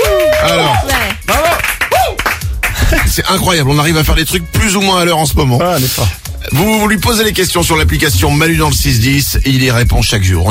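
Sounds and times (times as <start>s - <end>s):
people calling out and whooping: 0.0s - 2.4s
several people clapping in a studio: 0.0s - 3.4s
speech: 3.2s - 10.4s.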